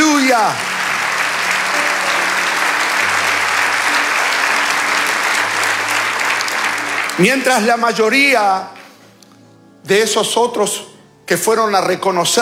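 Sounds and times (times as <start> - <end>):
audience applauding: 0.0 - 9.0
speech: 0.4 - 0.7, 7.2 - 8.8, 9.8 - 12.3.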